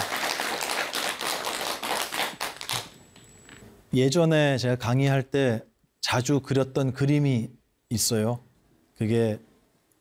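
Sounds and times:
crowd clapping: 0.0 - 2.9
speech: 3.9 - 9.5.

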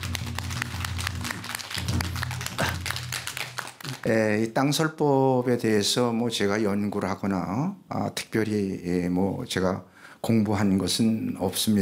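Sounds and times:
crowd applause: 0.0 - 4.1
speech: 4.0 - 11.8.

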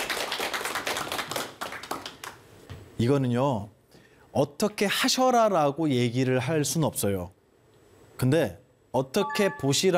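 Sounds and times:
crowd applauding: 0.0 - 2.4
speech: 3.0 - 3.8, 4.4 - 7.4, 8.2 - 9.9.

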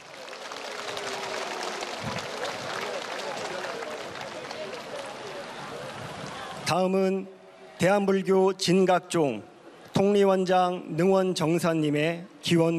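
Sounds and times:
crowd applauding: 0.0 - 6.6
speech: 6.7 - 12.7.

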